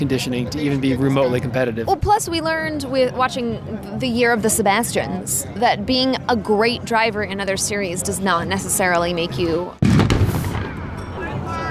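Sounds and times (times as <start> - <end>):
speech: 0.0 - 10.0
cannon firing: 9.8 - 11.0.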